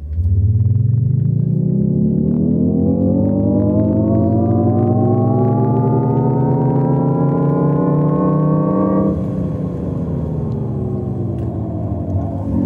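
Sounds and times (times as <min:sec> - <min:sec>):
electric car's artificial driving sound: 0:00.0 - 0:12.6
low rumble: 0:00.0 - 0:12.6.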